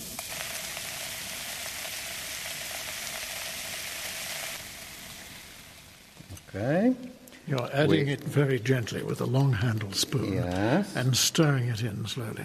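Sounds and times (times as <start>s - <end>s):
fizzing of powdered marble in iron chloride: 0.0s - 6.2s
speech: 6.5s - 12.4s.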